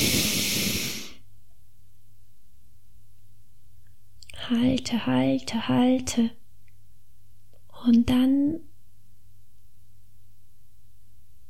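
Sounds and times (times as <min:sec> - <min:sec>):
deep breath in and out during a guided breathing exercise: 0:00.0 - 0:01.2
speech: 0:04.5 - 0:06.4, 0:07.8 - 0:08.7.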